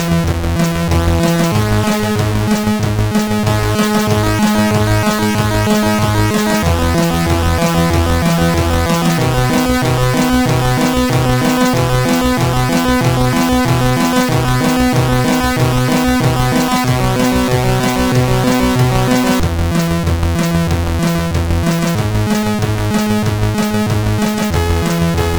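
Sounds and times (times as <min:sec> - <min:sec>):
chiptune melody on MOS6581R3 SID chip: 0:00.0 - 0:25.3.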